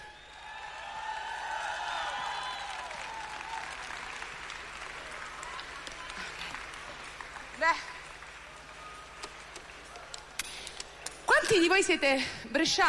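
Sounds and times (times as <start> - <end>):
crowd cheering and whooping: 0.0 - 7.4
audience applause for a band: 0.0 - 11.2
speech: 7.6 - 7.9, 11.5 - 12.8.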